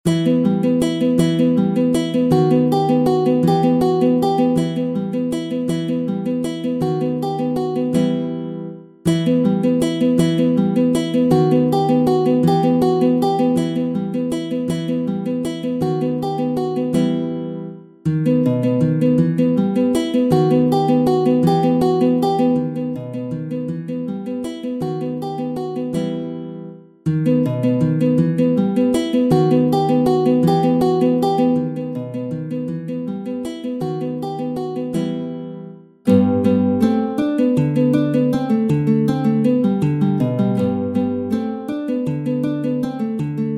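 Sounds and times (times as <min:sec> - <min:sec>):
guitar waltz: 0:00.0 - 0:43.5.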